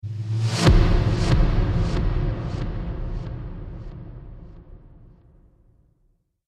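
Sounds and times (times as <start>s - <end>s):
trailer swoosh: 0.0s - 5.1s
trailer hit: 0.0s - 5.5s.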